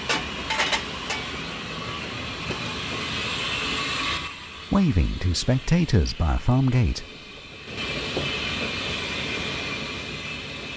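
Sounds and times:
steam locomotive running: 0:00.0 - 0:10.7
high whine: 0:04.2 - 0:10.5
speech: 0:04.7 - 0:07.2.

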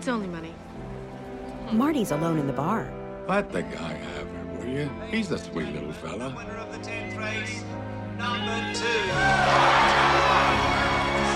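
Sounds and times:
speech: 0:00.0 - 0:00.7, 0:01.7 - 0:11.3
crowd cheering at a horse race: 0:08.9 - 0:11.3.

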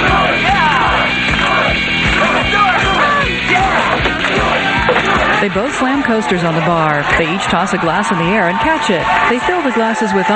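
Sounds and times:
steady regular low thumping beat: 0:00.0 - 0:06.9
nighttime crowd at a bar yelling and whooping: 0:00.0 - 0:10.3
speech: 0:05.5 - 0:10.3.

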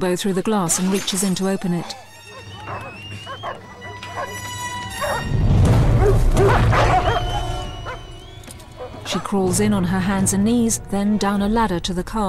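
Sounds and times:
speech: 0:00.0 - 0:02.1, 0:09.1 - 0:12.2
several dogs barking, yipping and whimpering below a garage roof: 0:00.7 - 0:09.4.

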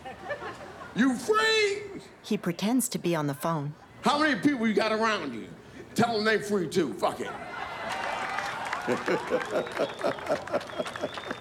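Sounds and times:
laughter: 0:00.0 - 0:01.2, 0:07.4 - 0:11.4
speech: 0:01.0 - 0:07.6, 0:08.8 - 0:11.4
audience applause: 0:07.8 - 0:11.4.

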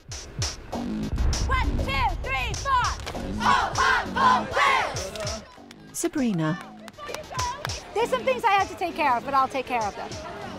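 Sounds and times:
cheerleading squad shouting a cheer in unison: 0:01.5 - 0:05.5, 0:06.6 - 0:10.5
dull thumps from claps or stomps: 0:05.0 - 0:07.8
speech: 0:06.0 - 0:06.7, 0:08.0 - 0:10.4.

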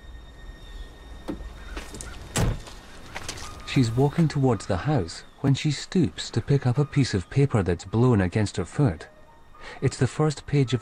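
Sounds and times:
stopped car's door opening: 0:01.2 - 0:03.7
speech: 0:03.7 - 0:10.8.

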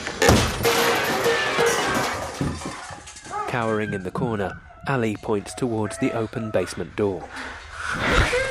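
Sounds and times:
pan rack crashing down from ceiling: 0:00.1 - 0:03.1
speech: 0:03.5 - 0:08.4.

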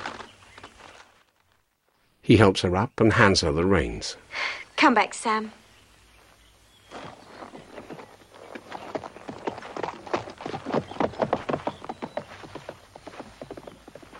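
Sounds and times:
speech: 0:02.3 - 0:05.6
horse hooves clip-clopping as it is ridden away: 0:06.9 - 0:14.1.

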